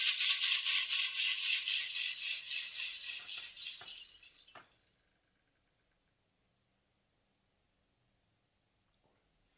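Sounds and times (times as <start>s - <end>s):
rainsticks: 0.2s - 4.8s.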